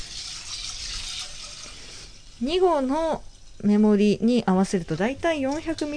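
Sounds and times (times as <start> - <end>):
water poured into a cooking pot: 0.0 - 3.7
speech: 2.4 - 5.9.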